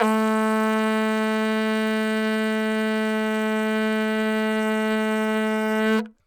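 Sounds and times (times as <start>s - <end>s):
vuvuzela blowing: 0.0s - 6.2s.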